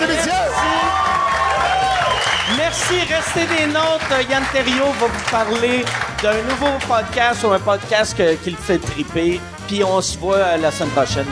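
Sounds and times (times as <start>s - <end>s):
audience applause: 0.0s - 7.4s
speech: 2.8s - 11.3s.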